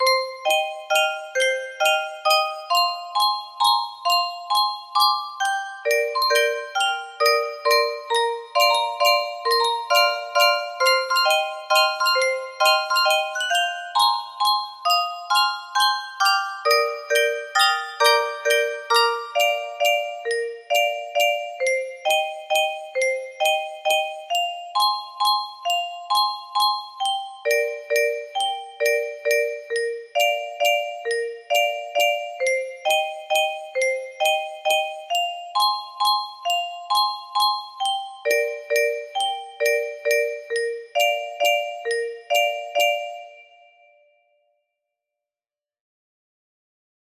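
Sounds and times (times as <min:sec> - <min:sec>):
music box melody in C minor: 0:00.0 - 0:44.1.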